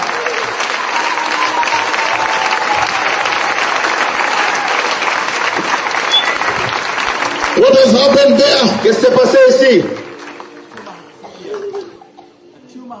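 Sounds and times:
congregation clapping in unison during a church worship service: 0:00.0 - 0:12.0
speech: 0:07.8 - 0:10.0.

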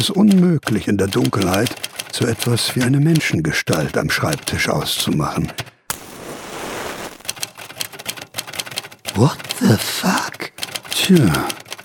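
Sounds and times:
George Orwell's Remington typewriter typebars striking paper: 0:00.0 - 0:05.7, 0:07.2 - 0:11.8
speech: 0:00.0 - 0:05.7, 0:09.2 - 0:11.6
steady hiss: 0:05.9 - 0:07.3.

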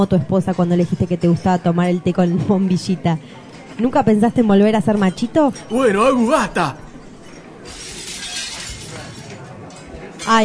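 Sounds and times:
speech: 0:00.0 - 0:06.8, 0:10.3 - 0:10.4
dropped drinking glass shattering: 0:07.2 - 0:09.4.

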